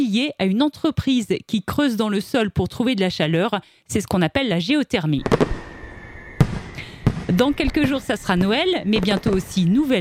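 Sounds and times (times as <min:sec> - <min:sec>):
speech: 0:00.0 - 0:05.5, 0:07.3 - 0:09.9
firecracker bangs: 0:05.2 - 0:09.9.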